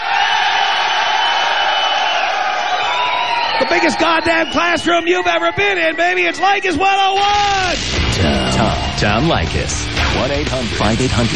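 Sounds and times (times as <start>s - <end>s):
studio audience of male students cheering and whooping: 0.0s - 9.5s
speech: 3.6s - 11.3s.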